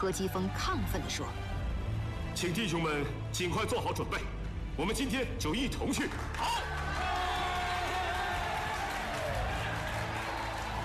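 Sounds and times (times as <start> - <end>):
speech: 0.0 - 1.6, 2.4 - 6.8
crowd applauding on a playground: 5.9 - 10.8.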